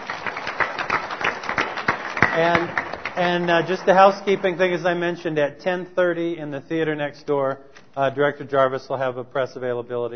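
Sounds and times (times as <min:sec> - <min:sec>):
audience applause: 0:00.0 - 0:04.8
speech: 0:02.4 - 0:10.1.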